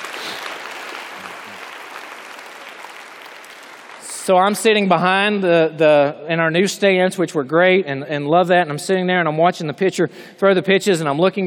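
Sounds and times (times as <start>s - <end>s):
round of applause: 0.0s - 4.8s
speech: 4.3s - 11.4s.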